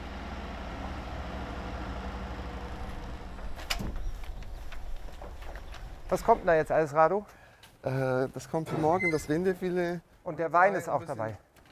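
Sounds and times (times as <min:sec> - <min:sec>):
delivery truck engine labouring while reversing up a dune: 0:00.0 - 0:04.6
speech: 0:06.1 - 0:11.4.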